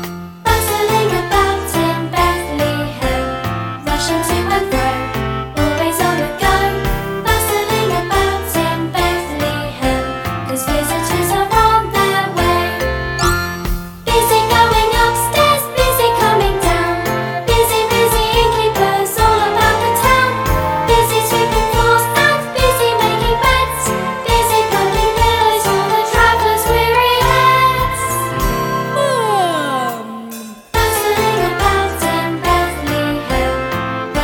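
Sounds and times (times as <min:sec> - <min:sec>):
vocals: 0:00.5 - 0:13.4, 0:14.0 - 0:34.1.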